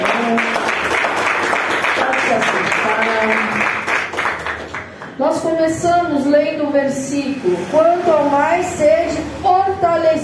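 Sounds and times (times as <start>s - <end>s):
audience applause: 0.0s - 5.2s
speech: 5.5s - 10.2s.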